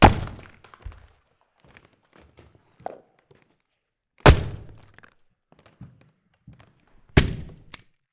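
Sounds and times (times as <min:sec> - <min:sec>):
axe: 0:00.0 - 0:00.6, 0:04.3 - 0:04.9, 0:07.2 - 0:07.8.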